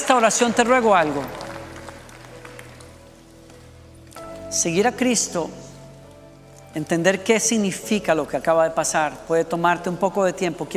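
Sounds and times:
audience applause: 0.0s - 3.1s
speech: 0.1s - 1.4s, 4.5s - 5.6s, 6.8s - 10.7s.

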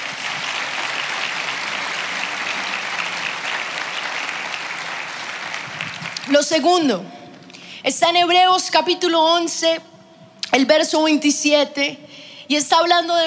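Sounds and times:
audience applause: 0.0s - 6.4s
speech: 6.3s - 7.2s, 7.8s - 9.9s, 10.5s - 13.2s.

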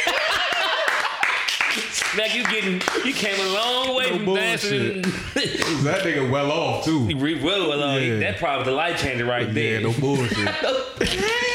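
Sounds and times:
hands clapping: 0.0s - 3.5s
laughter: 0.0s - 5.9s, 10.2s - 11.5s
speech: 2.1s - 11.5s.

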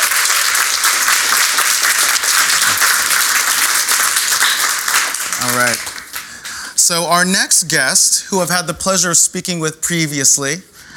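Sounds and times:
audience applause: 0.0s - 6.8s
speech: 5.6s - 5.9s, 6.9s - 10.8s.

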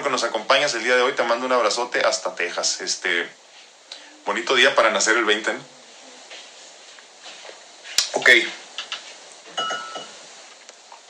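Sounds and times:
speech: 0.1s - 3.4s, 4.2s - 5.8s, 8.2s - 8.6s
drinking glass clinking as it nearly falls: 9.5s - 10.2s.

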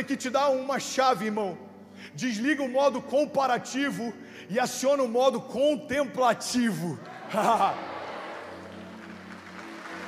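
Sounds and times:
speech: 0.0s - 7.9s
audience clapping: 7.0s - 10.0s
laughter: 7.1s - 8.7s.

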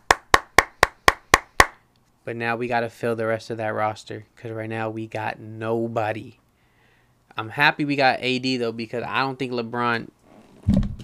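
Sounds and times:
hands clapping: 0.0s - 1.8s
speech: 2.3s - 6.4s, 7.4s - 10.2s.

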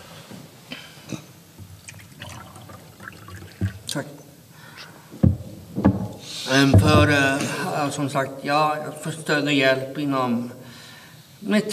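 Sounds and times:
water being poured into a glass: 1.8s - 4.0s
speech: 4.0s - 4.2s, 6.5s - 10.6s, 11.4s - 11.7s.

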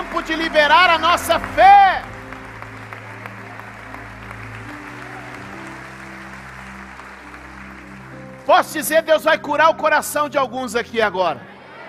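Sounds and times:
audience applauding: 0.0s - 9.1s
speech: 0.3s - 2.1s, 8.5s - 11.5s.

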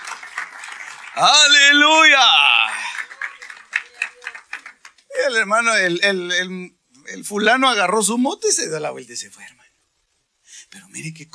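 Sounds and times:
crowd clapping rhythmically: 0.0s - 5.2s
speech: 1.2s - 2.6s, 5.3s - 9.6s, 10.7s - 11.3s.

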